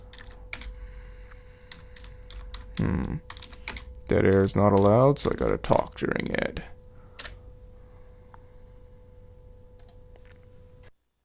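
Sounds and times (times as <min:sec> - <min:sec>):
typing on a computer keyboard: 0:00.0 - 0:00.8, 0:01.7 - 0:05.4, 0:07.2 - 0:07.4
faint steady hum: 0:00.0 - 0:11.2
speech: 0:02.8 - 0:03.4, 0:04.1 - 0:06.7.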